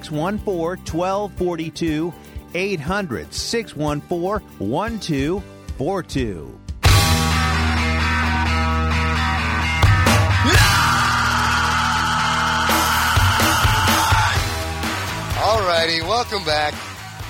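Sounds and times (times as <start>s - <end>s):
speech: 0.0s - 6.6s, 15.5s - 16.9s
dense noisy music-like backing: 0.0s - 17.2s
recorded long high-pitched scream: 10.3s - 14.5s.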